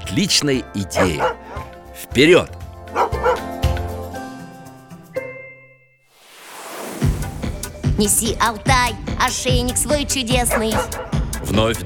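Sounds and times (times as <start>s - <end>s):
speech: 0.1s - 2.6s, 8.0s - 11.8s
dog barking and yipping: 1.0s - 1.8s, 2.9s - 3.8s, 10.4s - 11.2s
soft rushing noise: 6.1s - 7.7s.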